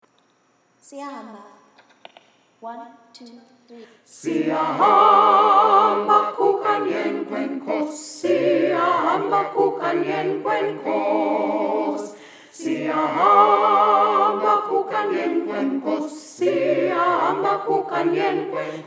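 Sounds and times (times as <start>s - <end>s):
alto voice singing: 4.1s - 18.8s.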